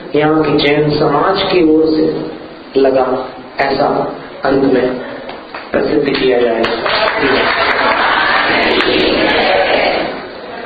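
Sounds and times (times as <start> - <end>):
speech: 0.1 - 5.1, 5.7 - 7.7
audience applause at a Jain community gathering: 5.2 - 10.2.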